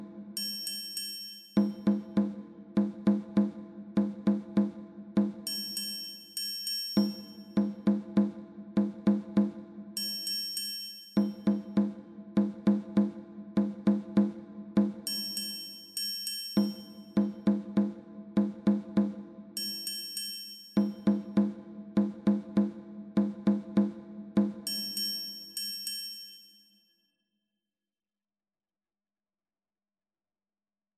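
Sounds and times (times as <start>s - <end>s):
rhythm: 1.6s - 6.3s, 7.0s - 10.6s, 11.1s - 16.0s, 16.5s - 19.9s, 20.8s - 25.3s.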